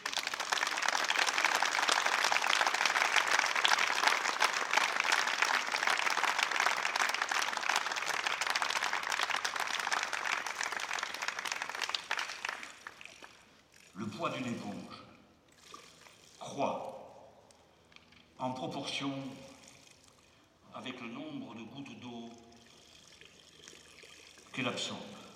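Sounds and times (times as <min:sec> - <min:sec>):
audience applause: 0:00.0 - 0:13.4
speech: 0:14.2 - 0:14.9, 0:18.6 - 0:19.5, 0:24.6 - 0:25.1.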